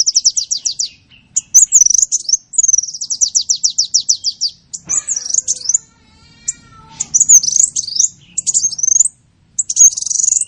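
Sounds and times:
sunbird song of high notes and trills: 0:00.0 - 0:10.4.

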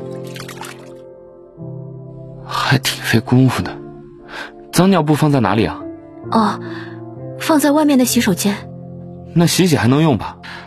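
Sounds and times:
baby bottle dipped into water to cool: 0:00.0 - 0:01.0
music: 0:00.0 - 0:10.6
speech: 0:02.7 - 0:03.8, 0:04.8 - 0:08.7, 0:09.3 - 0:10.6.

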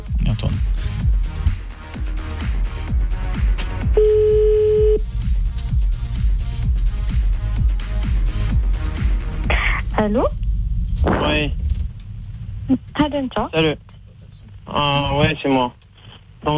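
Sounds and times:
pulsing music with a heavy regular bass beat: 0:00.0 - 0:11.4
telephone ringback tone during an outgoing call: 0:04.0 - 0:05.0
speech: 0:10.0 - 0:10.4, 0:12.7 - 0:13.9, 0:14.7 - 0:15.8.

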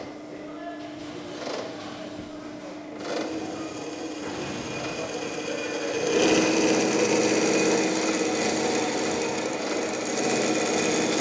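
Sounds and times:
band saw cutting sheet metal and metal profiles in a boilermaking workshop: 0:01.3 - 0:11.1.

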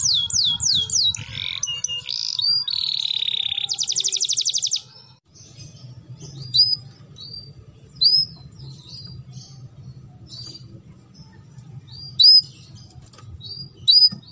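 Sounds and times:
canary song: 0:00.0 - 0:14.3.

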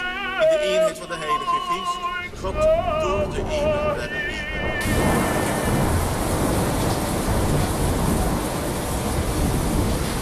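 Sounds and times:
speech: 0:00.5 - 0:05.1
rain shower: 0:02.3 - 0:10.1
thunder: 0:02.7 - 0:10.1.

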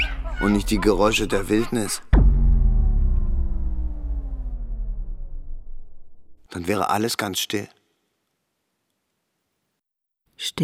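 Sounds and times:
motor engine running with low droning rumble: 0:00.0 - 0:06.4
speech: 0:00.4 - 0:02.2, 0:06.5 - 0:07.8, 0:10.4 - 0:10.6.

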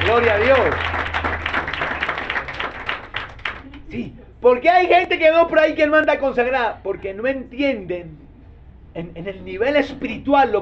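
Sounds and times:
audience clapping: 0:00.0 - 0:03.9
speech: 0:00.1 - 0:01.5, 0:03.9 - 0:08.2, 0:09.0 - 0:10.6.

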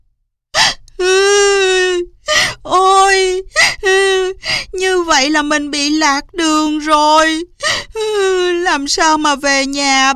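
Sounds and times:
lost girl sobbing and wailing: 0:00.6 - 0:09.4
speech: 0:05.3 - 0:10.1.

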